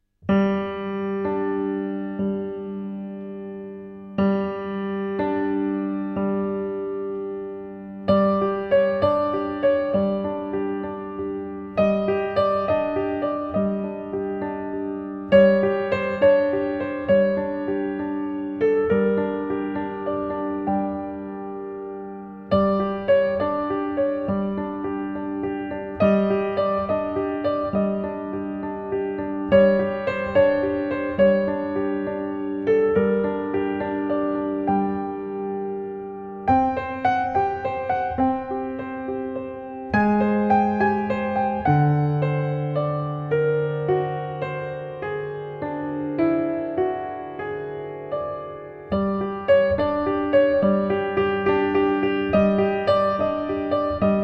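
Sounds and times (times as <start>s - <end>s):
piano: 0.0s - 54.2s.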